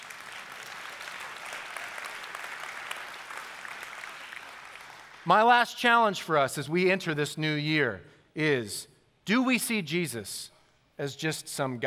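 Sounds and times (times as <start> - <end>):
audience clapping: 0.0 - 5.5
speech: 5.2 - 11.8.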